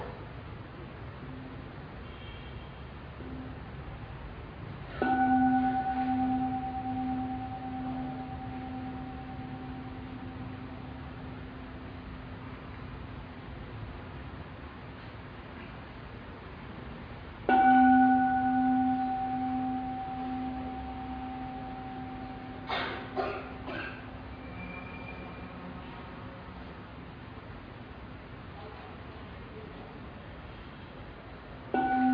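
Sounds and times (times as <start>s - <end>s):
meditation bell ringing: 5.0s - 11.7s, 17.5s - 25.5s, 31.7s - 32.1s.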